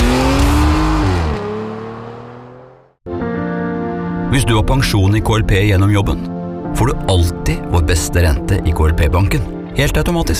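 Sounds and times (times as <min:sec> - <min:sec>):
racing car engine roaring: 0:00.0 - 0:03.0
speech: 0:04.3 - 0:10.3.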